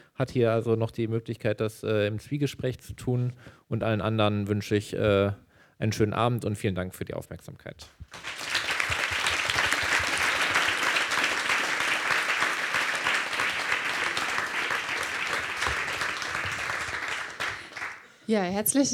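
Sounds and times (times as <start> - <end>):
speech: 0.2 - 8.4, 18.3 - 18.9
audience applause: 8.1 - 18.1.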